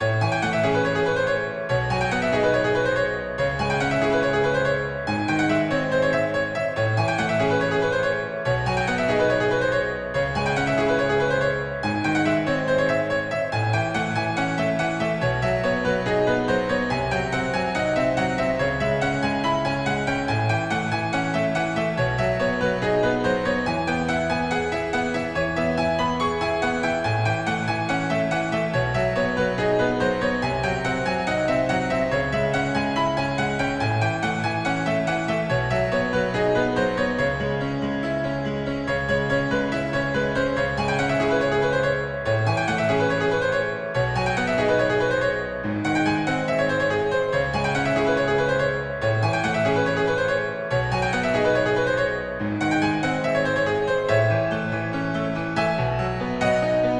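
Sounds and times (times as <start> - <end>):
piano: 0.0 - 56.9.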